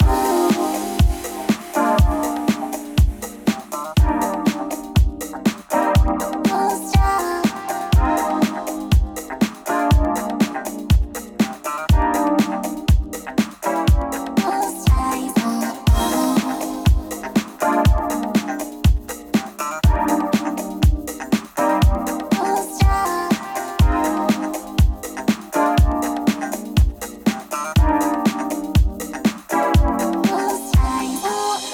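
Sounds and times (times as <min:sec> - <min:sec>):
funky disco loop: 0:00.0 - 0:31.7.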